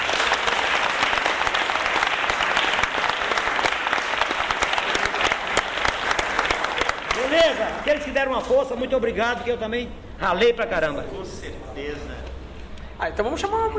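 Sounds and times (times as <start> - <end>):
audience applause: 0.0 - 8.2
speech: 7.8 - 12.3, 13.0 - 13.7.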